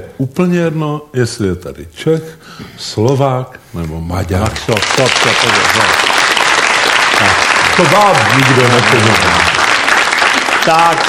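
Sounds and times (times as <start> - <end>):
speech: 0.0 - 6.2, 7.8 - 9.5, 10.6 - 11.0
audience applauding: 4.4 - 11.0.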